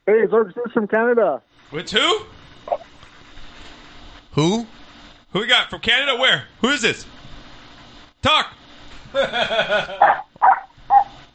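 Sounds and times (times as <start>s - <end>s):
speech: 0.1s - 2.4s, 4.4s - 7.2s, 8.2s - 10.6s
laughter: 9.2s - 10.2s
dog warbling whiny sound: 10.0s - 11.2s.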